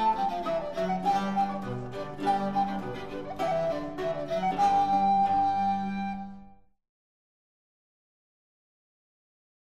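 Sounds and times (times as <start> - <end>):
jig tune: 0.0 - 6.5.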